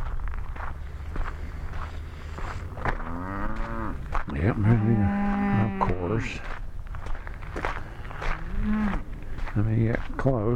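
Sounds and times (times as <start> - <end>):
footsteps: 0.0 - 10.5
cattle lowing: 2.9 - 4.0, 4.6 - 6.4, 8.0 - 9.1
speech: 4.4 - 5.2, 6.1 - 6.6, 9.6 - 10.5.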